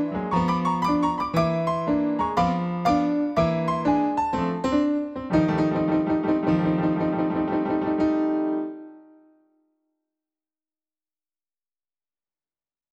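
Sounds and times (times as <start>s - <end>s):
old piano roll blues: 0.0s - 9.5s.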